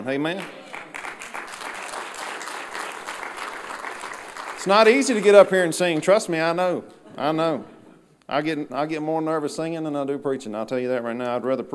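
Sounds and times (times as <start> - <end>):
speech: 0.0 - 0.6, 4.6 - 7.7, 8.3 - 11.7
audience applauding: 0.3 - 6.2.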